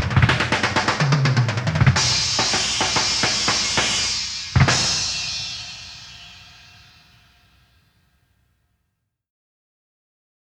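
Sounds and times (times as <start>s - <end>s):
drum solo: 0.0s - 7.4s.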